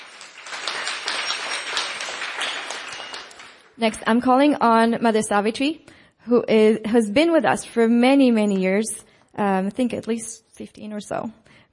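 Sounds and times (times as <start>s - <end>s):
audience applause: 0.0s - 3.8s
speech: 3.8s - 11.7s.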